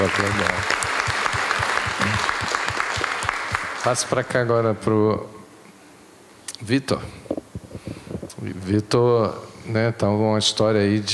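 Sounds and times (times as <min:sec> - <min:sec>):
applause: 0:00.0 - 0:04.4
speech: 0:00.1 - 0:00.9, 0:03.8 - 0:05.4, 0:06.6 - 0:07.2, 0:08.4 - 0:11.1.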